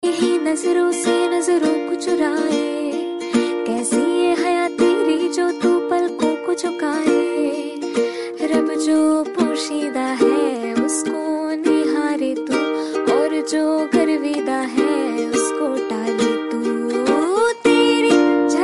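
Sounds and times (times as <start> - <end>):
woman singing a song: 0.0 - 18.6.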